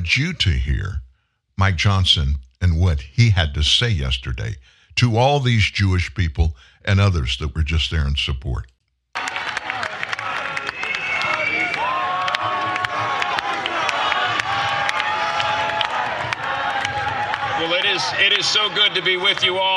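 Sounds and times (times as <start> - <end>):
speech: 0.0 - 1.0, 1.6 - 8.7, 18.0 - 19.7
large rally crowd cheering and applauding: 9.2 - 19.7
people shouting: 9.2 - 19.7
high whistles: 10.6 - 11.9.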